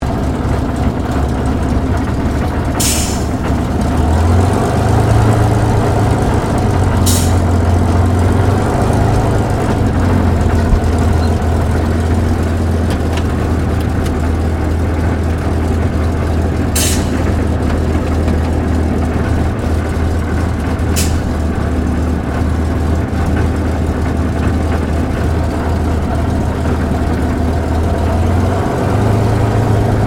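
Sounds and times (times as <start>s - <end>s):
Supermarine Spitfire Mk XVI taxiing heard from interior: 0.0s - 30.0s.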